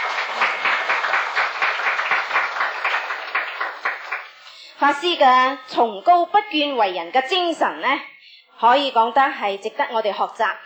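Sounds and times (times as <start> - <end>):
audience applause: 0.0 - 4.4
speech: 4.8 - 10.6.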